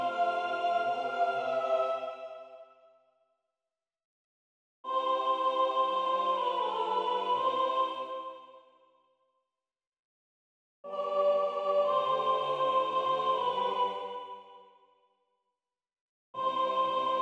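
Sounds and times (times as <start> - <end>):
soprano soloists singing: 0.0 - 2.6, 4.9 - 8.4, 10.9 - 14.5, 16.4 - 17.1.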